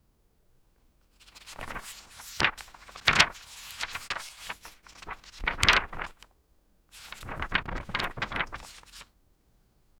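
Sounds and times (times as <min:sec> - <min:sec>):
paper book pages flying: 0:01.2 - 0:06.3, 0:07.0 - 0:09.0.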